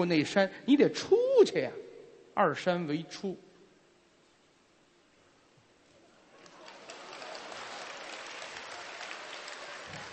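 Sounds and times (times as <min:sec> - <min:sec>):
speech: 0:00.0 - 0:01.8, 0:02.4 - 0:03.5
applause: 0:06.3 - 0:10.1.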